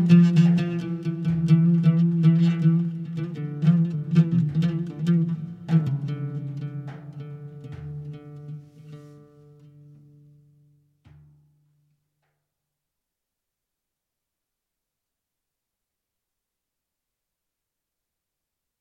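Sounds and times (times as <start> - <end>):
solo oud: 0.0 - 11.9.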